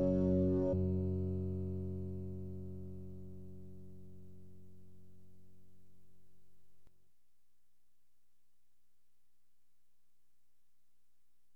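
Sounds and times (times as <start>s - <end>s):
instrumental music: 0.0s - 2.2s.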